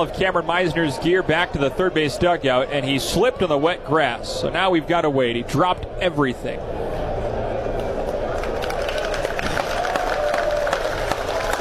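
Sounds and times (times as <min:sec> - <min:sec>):
speech: 0:00.0 - 0:06.8
baseball crowd applause: 0:07.8 - 0:11.5.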